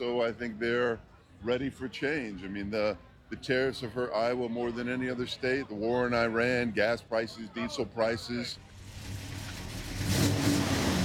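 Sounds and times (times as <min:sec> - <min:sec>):
speech: 0:00.0 - 0:08.7
vintage car engine revving: 0:08.7 - 0:11.0.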